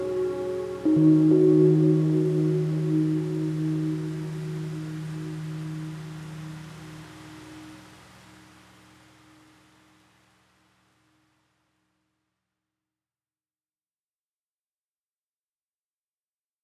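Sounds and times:
peaceful piano music: 0.0s - 9.9s.

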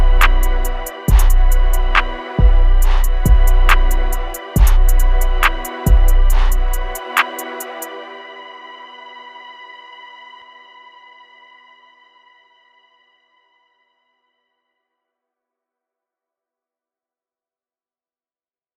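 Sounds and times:
minor trap beat at 140 BPM: 0.0s - 8.0s.

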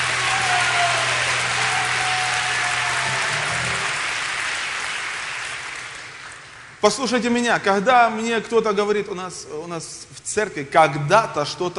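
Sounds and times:
audience applause: 0.0s - 6.8s
speech: 6.8s - 11.7s.

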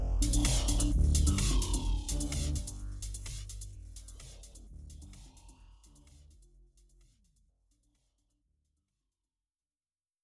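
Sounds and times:
dance music: 0.1s - 6.3s.

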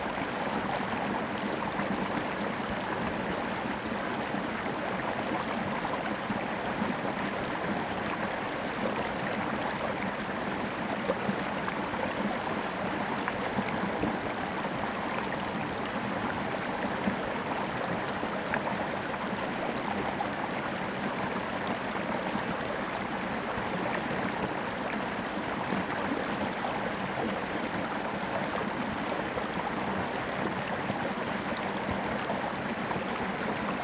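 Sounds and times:
river water in a rain forest: 0.0s - 33.8s.

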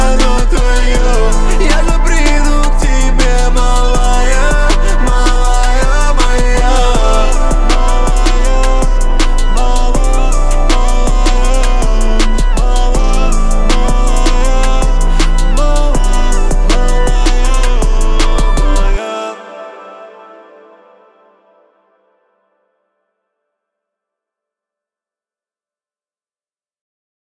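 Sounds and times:
low bass tones at 28 29 and 31 Hz: 0.0s - 19.0s.

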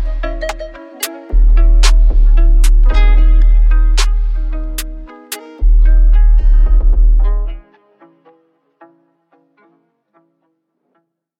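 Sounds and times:
screwed low bass at 37 to 41 Hz: 0.0s - 7.6s.

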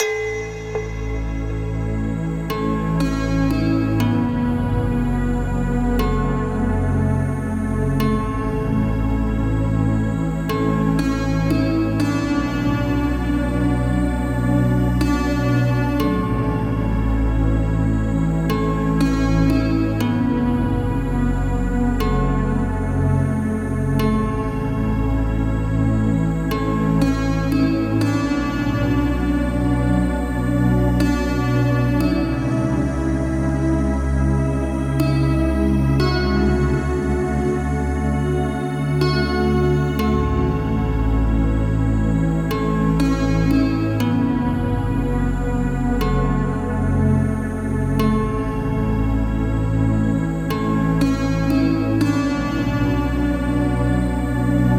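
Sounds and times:
binaural beats for meditation: 0.0s - 54.7s.

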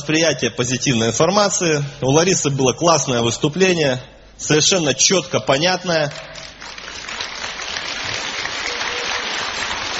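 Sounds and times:
speech: 0.0s - 6.4s
applause: 6.1s - 9.9s.

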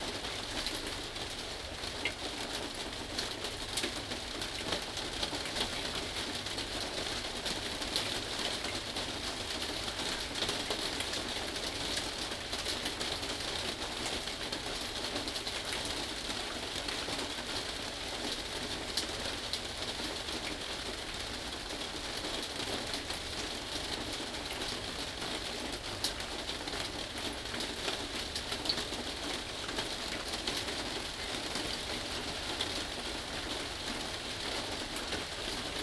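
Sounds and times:
rain inside a greenhouse: 0.0s - 35.8s.

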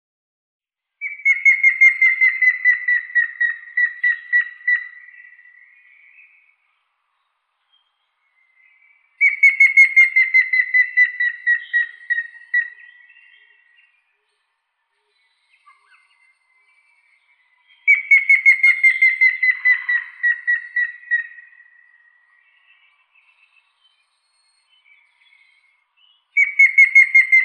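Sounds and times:
grey-headed woodpecker Picus canus whistling: 1.0s - 6.3s, 9.2s - 13.9s, 15.6s - 23.3s, 26.4s - 27.4s.

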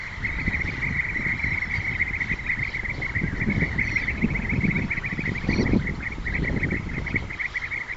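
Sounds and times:
European bee-eater Merops apiaster calls: 0.0s - 7.9s.

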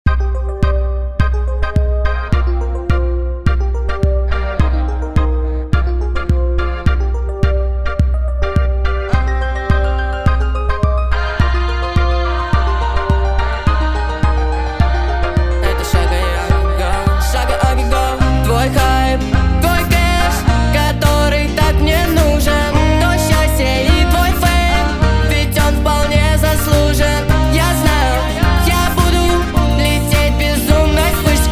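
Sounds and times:
nightcore music with reverb: 0.0s - 31.4s.

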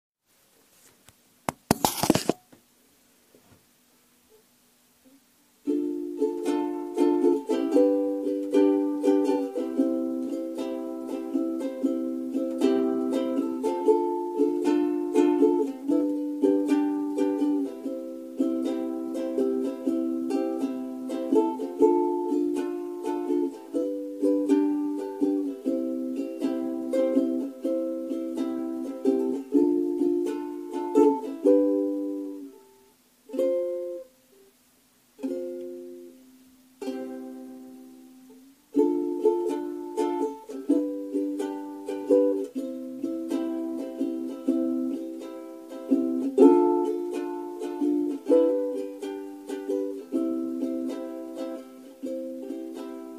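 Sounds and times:
ukulele cover song: 1.5s - 2.4s, 5.1s - 53.1s.

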